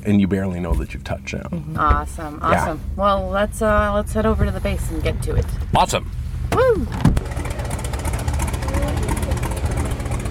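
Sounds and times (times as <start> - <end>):
speech: 0.0 - 7.3
seaplane base engine drone: 0.0 - 10.2
person whooping: 6.6 - 6.9.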